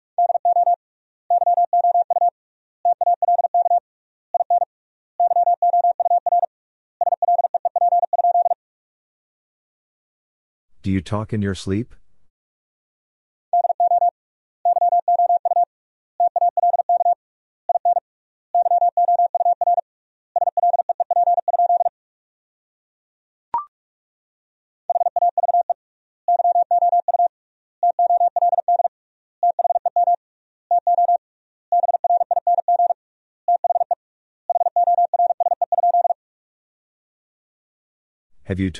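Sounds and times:
mid-pitched Morse code practice beeps at 45 wpm: 0.2s - 2.3s, 2.9s - 3.8s, 4.4s - 8.6s, 13.6s - 14.1s, 14.7s - 18.0s, 18.6s - 19.8s, 20.4s - 21.9s, 24.9s - 36.2s
speech: 10.8s - 12.0s, 38.6s - 38.7s.

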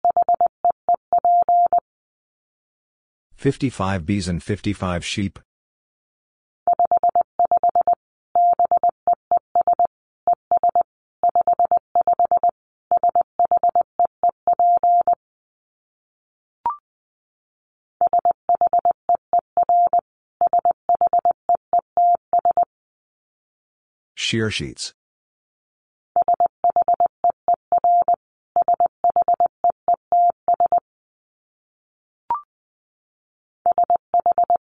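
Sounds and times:
Morse code tones at 20 words per minute: 0.0s - 1.8s, 6.7s - 9.9s, 10.5s - 15.2s, 18.0s - 22.7s, 26.2s - 30.8s, 33.7s - 34.6s
speech: 3.4s - 5.4s, 24.3s - 25.0s.

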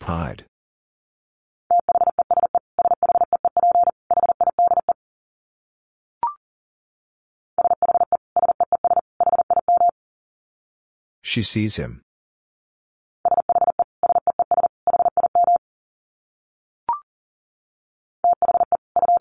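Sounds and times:
speech: 0.1s - 0.5s, 11.3s - 12.1s
fast Morse code at 40 words per minute: 1.7s - 5.0s, 7.6s - 9.9s, 13.3s - 15.6s, 18.3s - 19.1s.

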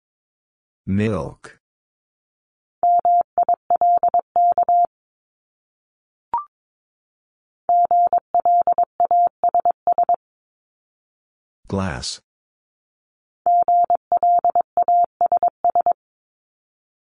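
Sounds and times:
speech: 0.9s - 1.6s, 11.7s - 12.3s
Morse code tones at 22 words per minute: 2.8s - 4.9s, 7.7s - 10.2s, 13.5s - 16.0s.

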